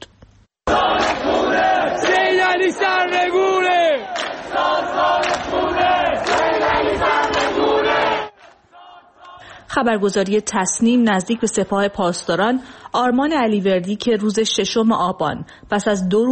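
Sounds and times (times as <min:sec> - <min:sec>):
crowd of protesters chanting slogans against the government: 0:00.7 - 0:09.5
speech: 0:09.8 - 0:16.3.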